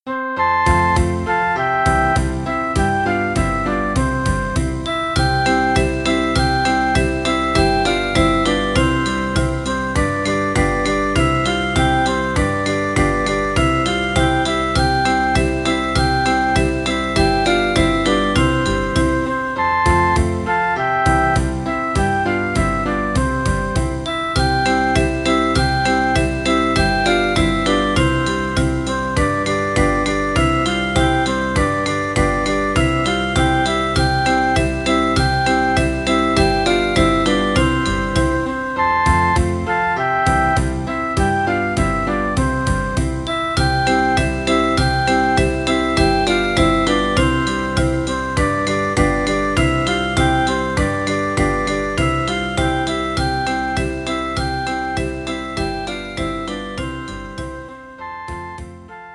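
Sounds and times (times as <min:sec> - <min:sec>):
circus songs backing track: 0:00.0 - 0:59.1.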